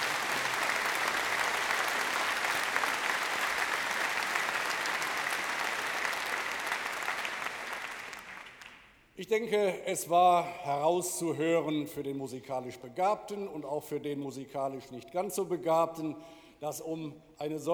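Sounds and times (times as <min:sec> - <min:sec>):
audience applause: 0:00.0 - 0:08.9
speech: 0:09.2 - 0:17.7.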